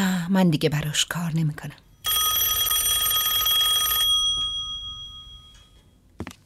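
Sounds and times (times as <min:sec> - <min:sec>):
speech: 0:00.3 - 0:01.9
telephone ringing: 0:02.0 - 0:06.0.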